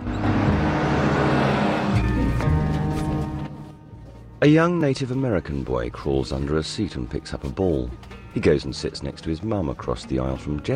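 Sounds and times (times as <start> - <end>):
bus engine droning on a mountain road: 0.0 - 8.4
speech: 4.4 - 10.7.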